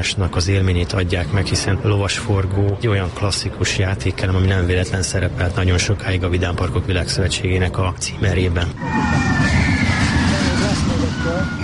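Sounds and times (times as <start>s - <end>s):
speech: 0.0s - 9.6s
children screaming on a roller coaster: 8.8s - 11.6s.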